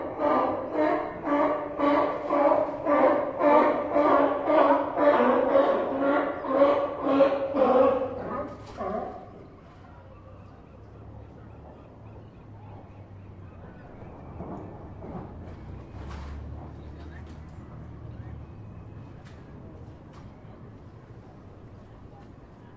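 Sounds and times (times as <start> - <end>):
sea lion barking: 0.0 - 15.4.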